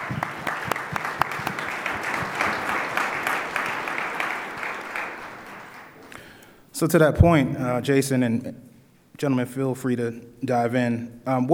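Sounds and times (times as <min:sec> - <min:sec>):
group applause: 0:00.0 - 0:06.6
speech: 0:06.8 - 0:11.5.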